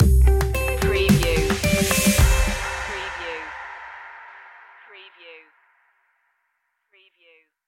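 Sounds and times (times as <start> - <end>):
music stinger: 0.0 - 4.8.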